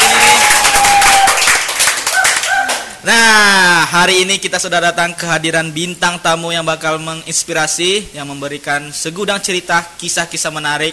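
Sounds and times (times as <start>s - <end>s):
clapping: 0.0s - 3.0s
speech: 3.1s - 10.9s.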